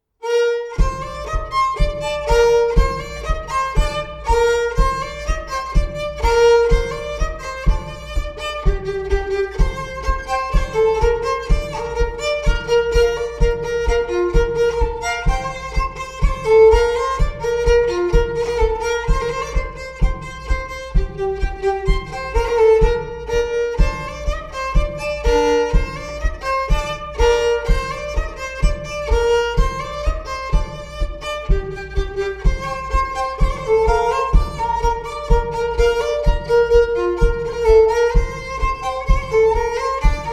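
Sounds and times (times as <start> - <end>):
bourrée dance tune: 0.2 - 40.3.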